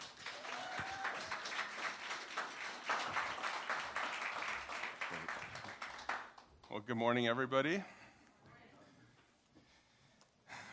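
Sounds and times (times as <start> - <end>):
audience applause welcoming a speaker: 0.0 - 6.5
speech: 6.8 - 8.0.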